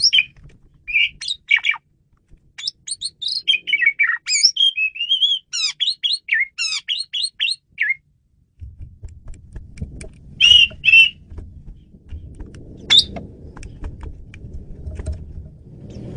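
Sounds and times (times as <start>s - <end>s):
Asian pied starling whistled and chirping notes: 0.0s - 1.8s, 2.6s - 8.0s, 10.4s - 11.2s, 12.8s - 13.2s.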